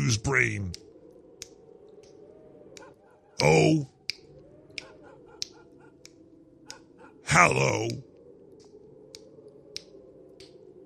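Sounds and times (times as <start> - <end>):
speech: 0.1 - 0.9, 3.4 - 3.9, 7.3 - 8.1
finger snaps: 0.6 - 3.0, 4.0 - 6.8, 7.9 - 10.7.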